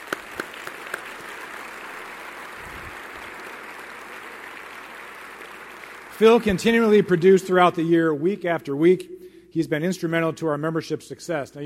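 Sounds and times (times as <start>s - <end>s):
audience applause: 0.0s - 7.8s
speech: 6.2s - 11.6s.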